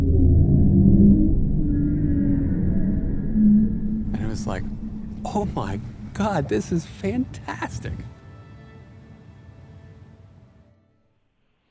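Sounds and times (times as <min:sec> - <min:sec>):
bowhead whales roaring low frequency moans: 0:00.0 - 0:06.9
speech: 0:05.3 - 0:08.1.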